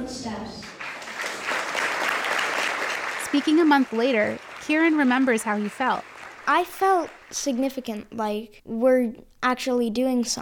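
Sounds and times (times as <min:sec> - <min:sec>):
speech: 0:00.1 - 0:00.8, 0:03.3 - 0:10.3
audience applauding at council public hearing: 0:00.6 - 0:07.9.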